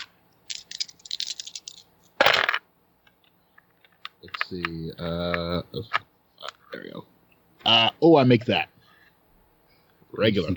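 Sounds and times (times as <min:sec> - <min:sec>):
dice rattling and clattering: 0:00.0 - 0:02.6
speech: 0:04.2 - 0:06.1, 0:07.7 - 0:08.7, 0:10.2 - 0:10.5.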